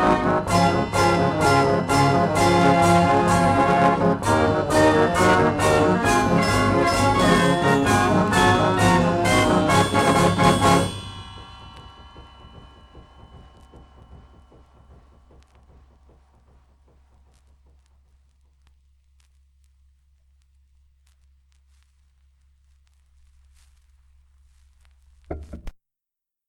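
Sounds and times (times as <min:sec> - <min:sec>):
carousel organ: 0:00.0 - 0:11.1.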